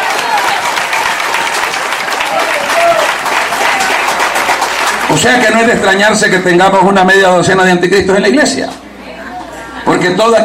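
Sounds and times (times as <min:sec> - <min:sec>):
audience applause: 0:00.0 - 0:05.8
speech: 0:05.2 - 0:08.8, 0:10.0 - 0:10.4.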